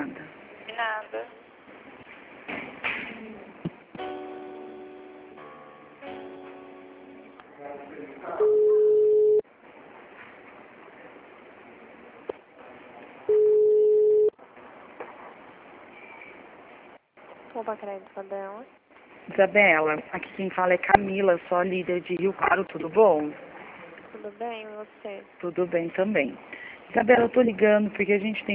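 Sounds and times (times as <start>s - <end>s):
speech: 0.8s - 1.5s, 17.6s - 23.5s, 24.2s - 28.5s
telephone line beeps during a call transfer: 8.4s - 9.4s, 13.3s - 14.4s.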